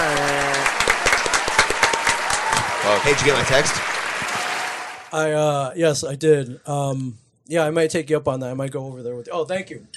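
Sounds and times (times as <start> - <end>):
people clapping: 0.0 - 5.2
speech: 2.9 - 4.0, 5.1 - 9.9.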